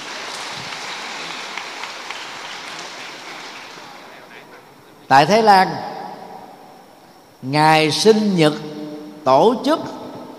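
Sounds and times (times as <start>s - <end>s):
audience applause: 0.0s - 5.1s
speech: 5.1s - 5.9s, 7.4s - 10.0s.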